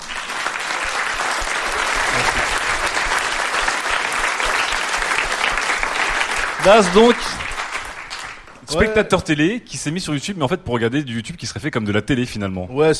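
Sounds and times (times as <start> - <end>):
audience applause: 0.0 - 8.8
speech: 6.6 - 7.4, 8.7 - 12.9.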